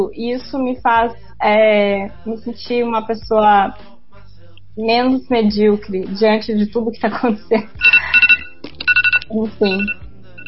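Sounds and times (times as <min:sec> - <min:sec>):
speech: 0:00.0 - 0:04.0, 0:04.8 - 0:07.9, 0:09.3 - 0:10.0
timer alarm bell ringing: 0:07.8 - 0:10.4.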